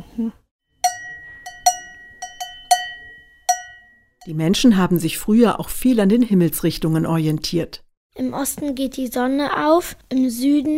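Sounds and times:
speech: 0.2s - 0.4s, 4.2s - 10.7s
cowbells ringing: 0.8s - 4.4s.

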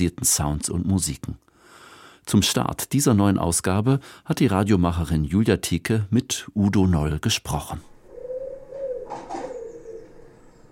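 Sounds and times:
speech: 0.0s - 1.5s, 2.3s - 7.9s
pigeon cooing in a Berlin-Neukölln backyard, played over computer speakers: 7.9s - 10.7s
brief rustling: 8.5s - 10.7s.

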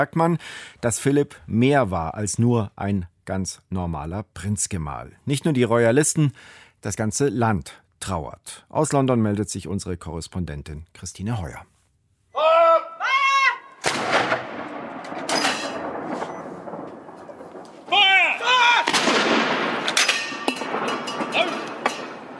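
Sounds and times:
speech: 0.0s - 11.7s
artillery gun salute shots for Prinz Philip at the Tower in London: 13.5s - 22.3s.

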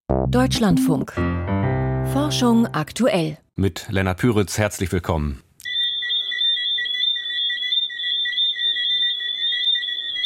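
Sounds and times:
speech: 0.1s - 5.4s
Johnstone's whistling frogs calling: 5.6s - 10.2s.

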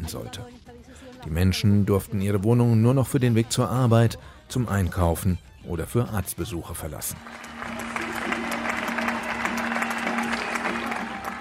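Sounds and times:
speech: 0.1s - 7.8s
people applauding from windows: 7.2s - 11.3s.

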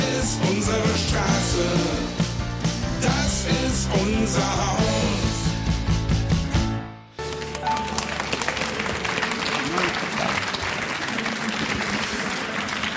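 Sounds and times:
song: 0.0s - 8.6s
audience applause: 7.2s - 12.9s.

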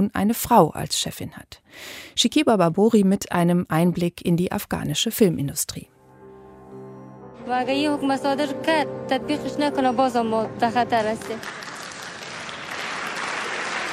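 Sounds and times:
speech: 0.0s - 5.9s, 7.4s - 11.6s
audience clapping at the women's film festival in Kabul: 11.0s - 13.9s.

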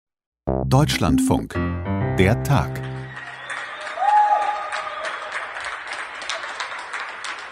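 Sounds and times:
speech: 0.7s - 2.8s
people clapping out of windows at night: 2.8s - 7.5s.

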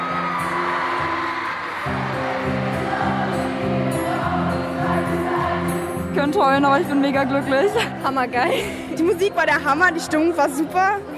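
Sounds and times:
concert crowd of girls screaming and cheering: 0.0s - 5.8s
speech: 6.2s - 11.1s.

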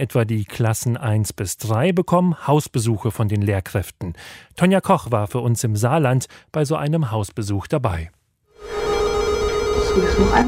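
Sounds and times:
speech: 0.0s - 8.8s, 10.0s - 10.4s
electronic doorbell ringing: 8.6s - 10.4s.

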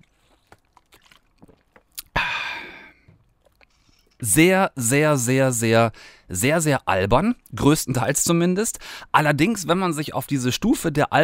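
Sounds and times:
person sipping a drink: 0.0s - 4.2s
loud breathy exhale: 2.2s - 3.1s
speech: 4.2s - 11.2s.

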